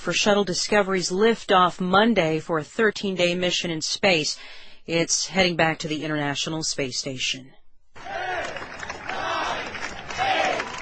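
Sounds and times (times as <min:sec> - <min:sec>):
speech: 0:00.0 - 0:07.6
crowd counting down at Apple Store opening in Manhattan: 0:08.0 - 0:10.8.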